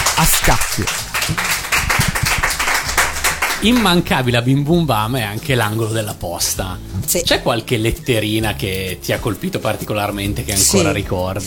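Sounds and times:
audience applause: 0:00.0 - 0:04.2
speech: 0:00.2 - 0:01.6, 0:03.6 - 0:11.4.

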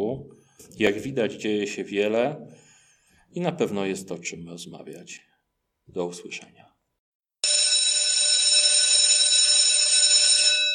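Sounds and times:
speech: 0:00.0 - 0:02.6, 0:03.3 - 0:05.3, 0:05.9 - 0:06.7
bell ringing: 0:07.4 - 0:10.7.

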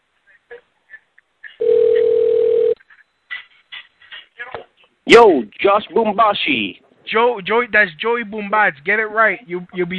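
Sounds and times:
phone ringing tone: 0:01.6 - 0:02.8
speech: 0:05.1 - 0:09.9.

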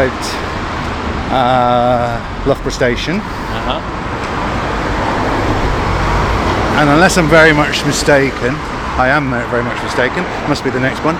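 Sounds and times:
road traffic rumbling under a railway bridge: 0:00.0 - 0:11.1
speech: 0:01.3 - 0:04.0, 0:06.8 - 0:11.1.

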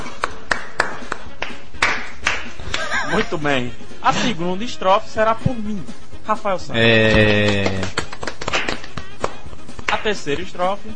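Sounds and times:
audience clapping in unison: 0:00.0 - 0:02.9, 0:07.1 - 0:10.1
laughter: 0:02.6 - 0:03.4
speech: 0:03.1 - 0:08.0, 0:10.0 - 0:10.9.

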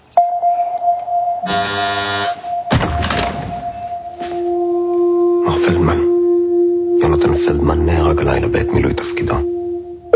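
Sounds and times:
high tone hum: 0:00.0 - 0:10.1
buzzing doorbell: 0:01.4 - 0:02.6
door thunk: 0:02.7 - 0:03.8.

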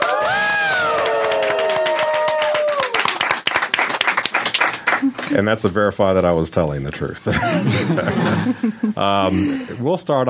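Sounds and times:
high whoops and cheers: 0:00.0 - 0:03.2
round of applause from a small group in a broadcast booth: 0:00.0 - 0:05.4
speech: 0:05.4 - 0:10.2
laughter: 0:07.2 - 0:09.8.

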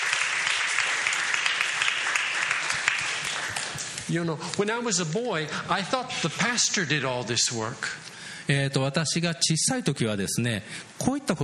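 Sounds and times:
audience clapping hands: 0:00.0 - 0:04.7
speech: 0:04.1 - 0:11.4.

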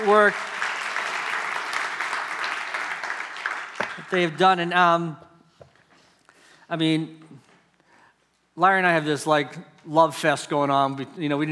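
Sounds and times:
speech: 0:00.0 - 0:00.5, 0:04.0 - 0:05.3, 0:06.7 - 0:07.5, 0:08.6 - 0:11.5
audience applause: 0:00.0 - 0:04.3.

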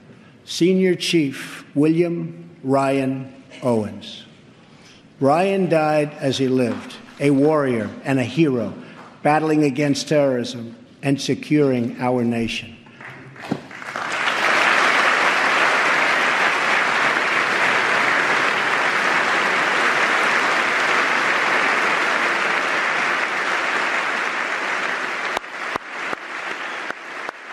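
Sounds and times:
speech: 0:00.5 - 0:04.3, 0:05.2 - 0:12.8
large crowd applauding: 0:13.0 - 0:27.5.

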